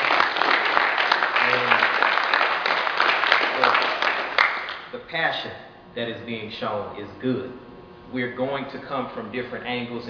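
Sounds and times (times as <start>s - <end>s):
audience applause: 0.0s - 4.9s
speech: 5.2s - 10.0s.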